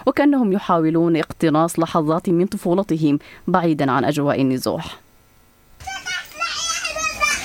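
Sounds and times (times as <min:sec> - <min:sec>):
speech: 0:00.1 - 0:05.0
children calling and chattering in a small pool in a displacement camp: 0:05.8 - 0:07.4.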